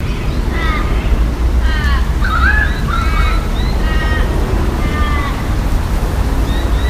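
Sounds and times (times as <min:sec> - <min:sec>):
birds: 0:00.0 - 0:06.8.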